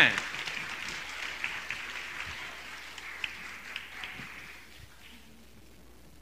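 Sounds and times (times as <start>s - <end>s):
audience applause: 0.0s - 4.9s.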